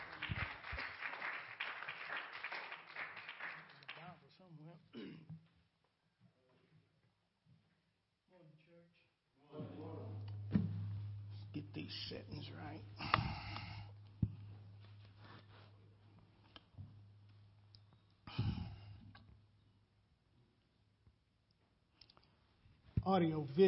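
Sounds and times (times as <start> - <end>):
audience clapping hands in praise: 0.0 - 4.4
steady low hum: 9.4 - 23.6
speech: 11.9 - 13.4, 23.1 - 23.6.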